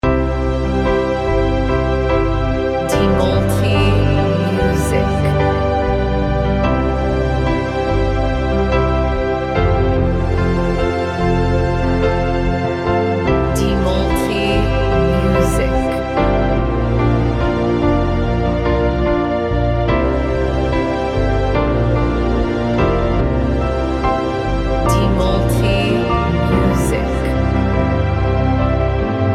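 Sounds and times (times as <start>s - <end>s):
instrumental modern piano: 0.0s - 29.3s.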